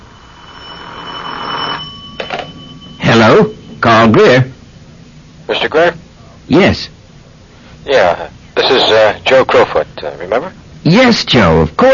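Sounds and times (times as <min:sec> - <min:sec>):
telephone ringing with an electronic ring tone: 0:00.0 - 0:04.3
speech: 0:03.3 - 0:04.5, 0:05.5 - 0:07.0, 0:07.9 - 0:11.9.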